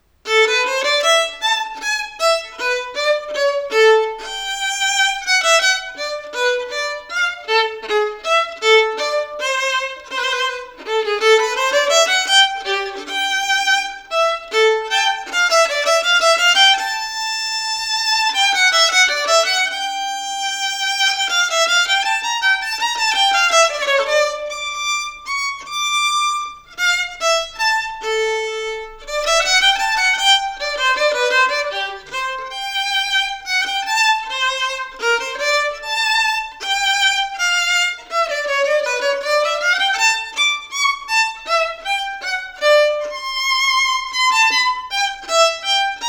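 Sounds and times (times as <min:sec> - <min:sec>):
double concerto: 0:00.0 - 0:46.0.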